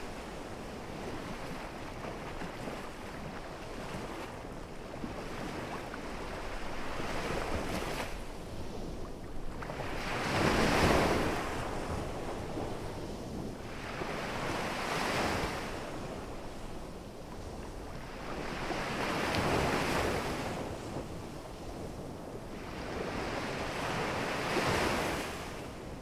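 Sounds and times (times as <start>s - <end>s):
ocean: 0.0s - 26.0s.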